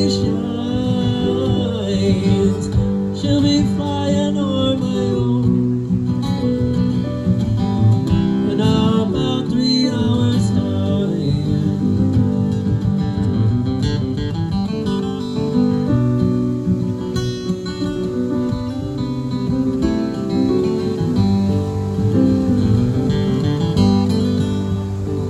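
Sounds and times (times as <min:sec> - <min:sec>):
guitar: 0:00.0 - 0:25.2
piano: 0:00.0 - 0:25.2.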